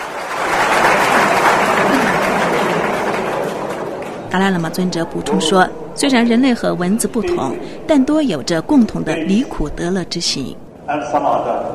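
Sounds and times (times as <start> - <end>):
large audience applause: 0.0 - 4.9
speech: 4.4 - 11.7.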